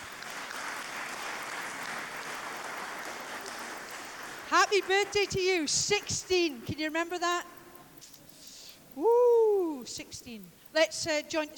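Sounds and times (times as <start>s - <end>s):
crowd applause: 0.0s - 5.4s
speech: 4.7s - 7.6s, 9.0s - 9.2s, 9.8s - 11.5s.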